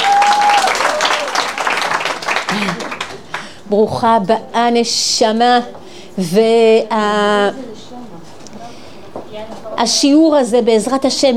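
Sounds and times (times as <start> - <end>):
audience applause: 0.0 - 3.6
speech: 3.7 - 7.7, 9.4 - 11.3.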